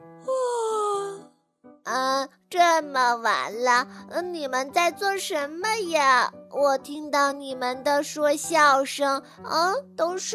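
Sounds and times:
person yawning: 0.3 - 1.2
speech: 1.9 - 10.3.

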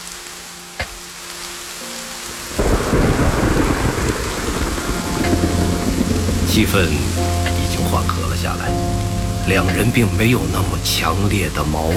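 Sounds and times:
heavy rainstorm with strong wind outside: 0.0 - 11.9
low hum: 2.6 - 11.9
speech: 6.6 - 7.3, 9.5 - 11.9.

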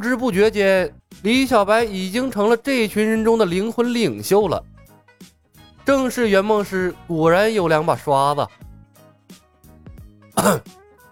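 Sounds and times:
speech: 0.0 - 4.7, 5.8 - 8.6, 10.4 - 10.8
throat noises: 10.4 - 10.7
cough: 10.4 - 10.8.

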